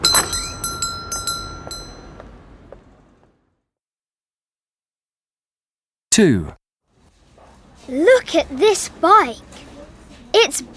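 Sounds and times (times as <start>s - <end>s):
shop door bell jingling as door opens: 0.0s - 2.7s
speech: 6.2s - 6.6s, 7.9s - 9.6s, 10.3s - 10.7s.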